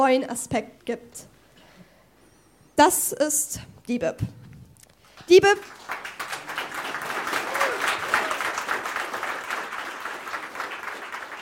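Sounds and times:
speech: 0:00.0 - 0:01.3, 0:02.8 - 0:04.4, 0:05.3 - 0:06.0
audience applause: 0:05.6 - 0:11.4.

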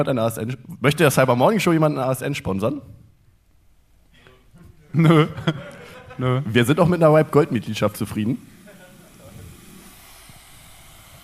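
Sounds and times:
speech: 0:00.0 - 0:03.0, 0:05.0 - 0:08.5
laughter: 0:04.6 - 0:06.8, 0:08.4 - 0:09.8
electric kettle: 0:07.3 - 0:11.2.

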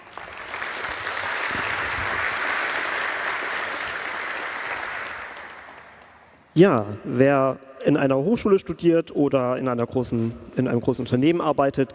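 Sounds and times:
audience applause: 0:00.0 - 0:06.4
speech: 0:06.6 - 0:11.9.

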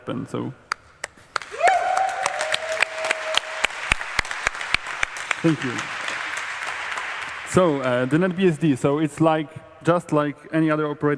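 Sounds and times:
speech: 0:00.0 - 0:00.6, 0:05.4 - 0:06.0, 0:07.5 - 0:11.1
audience applause at a conference talk: 0:00.7 - 0:09.3.

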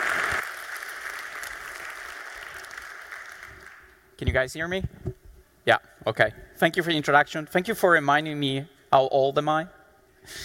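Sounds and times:
audience applause: 0:00.0 - 0:04.0
speech: 0:04.2 - 0:05.0, 0:05.6 - 0:10.4.

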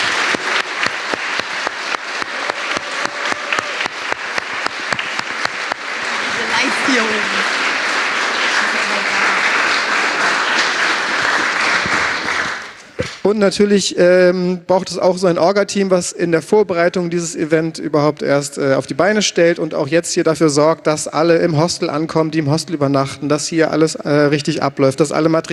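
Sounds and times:
audience applause: 0:00.0 - 0:13.3
speech: 0:13.3 - 0:25.5.

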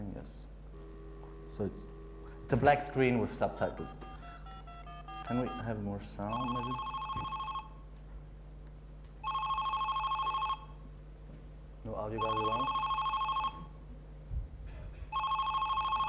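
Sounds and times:
telephone ringing on a call to the Zurich opera phone line: 0:00.8 - 0:07.8, 0:09.2 - 0:10.8, 0:12.1 - 0:13.7, 0:15.1 - 0:16.0
speech: 0:01.6 - 0:04.1, 0:05.3 - 0:07.3, 0:12.0 - 0:12.8.

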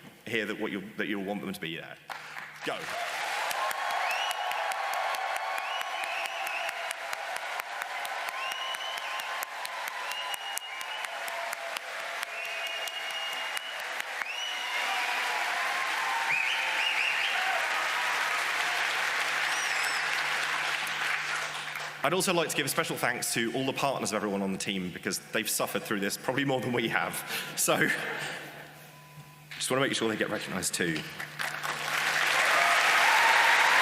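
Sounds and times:
speech: 0:00.3 - 0:03.1, 0:22.1 - 0:28.4, 0:29.7 - 0:31.4
audience giving a loud round of applause: 0:02.1 - 0:22.0, 0:31.2 - 0:33.8.

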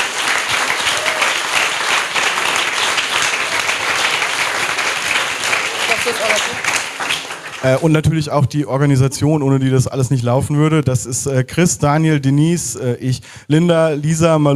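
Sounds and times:
crowd applause: 0:00.0 - 0:08.2
speech: 0:06.1 - 0:06.8, 0:07.6 - 0:14.5.

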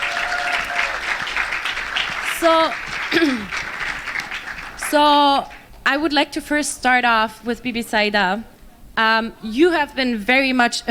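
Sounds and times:
audience applause: 0:00.0 - 0:05.7
speech: 0:02.4 - 0:03.7, 0:04.9 - 0:10.8.

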